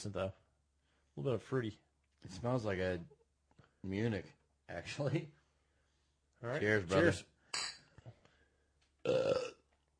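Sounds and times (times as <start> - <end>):
speech: 0.0 - 0.4, 1.2 - 3.2, 3.8 - 5.4, 6.4 - 7.3, 9.0 - 9.5
loud throaty burp: 9.0 - 9.7.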